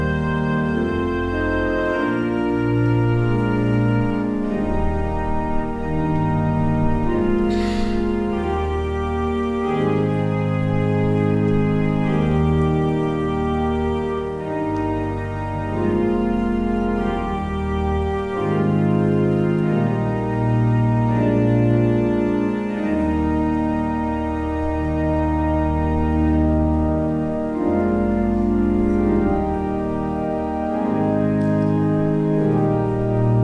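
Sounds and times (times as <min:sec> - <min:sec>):
music interlude: 0:00.0 - 0:33.4.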